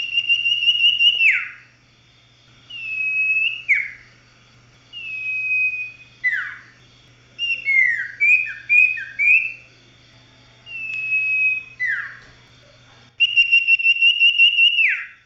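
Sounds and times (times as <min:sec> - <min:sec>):
Oriental magpie-robin whistling song: 0:00.0 - 0:01.7, 0:02.6 - 0:04.1, 0:04.9 - 0:09.7, 0:10.7 - 0:12.3, 0:13.2 - 0:15.2.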